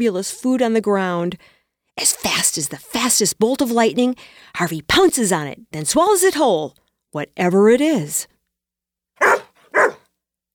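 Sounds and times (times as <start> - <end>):
speech: 0.0 - 8.3
dog barking: 9.2 - 10.1.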